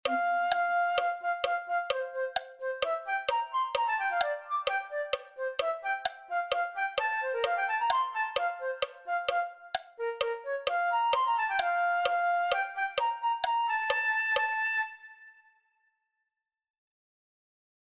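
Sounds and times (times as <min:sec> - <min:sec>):
flute: 0:00.0 - 0:15.9.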